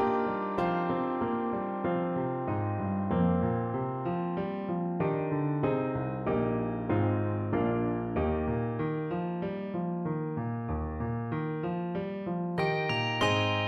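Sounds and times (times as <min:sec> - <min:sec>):
piano accompaniment: 0:00.0 - 0:13.6
two-octave handbells: 0:12.6 - 0:13.6.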